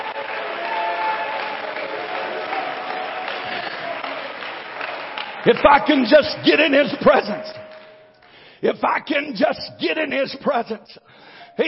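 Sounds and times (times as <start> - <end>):
audience clapping: 0.0 - 8.5
speech: 5.4 - 7.6, 8.6 - 11.6.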